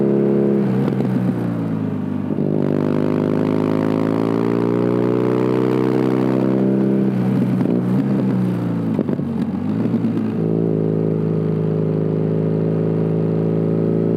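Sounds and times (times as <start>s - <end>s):
BMW R nineT Scrambler motorcycle exhaust: 0.0s - 14.1s.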